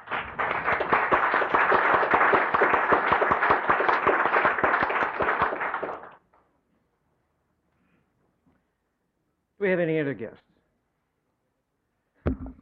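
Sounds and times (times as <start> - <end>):
applause welcoming guests in a legislative chamber: 0.0 - 6.4
speech: 9.6 - 10.4.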